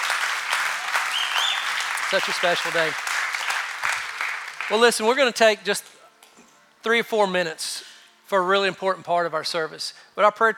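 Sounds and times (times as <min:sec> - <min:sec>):
audience clapping: 0:00.0 - 0:05.4
speech: 0:02.1 - 0:03.1, 0:04.7 - 0:05.9, 0:06.8 - 0:07.7, 0:08.3 - 0:10.5.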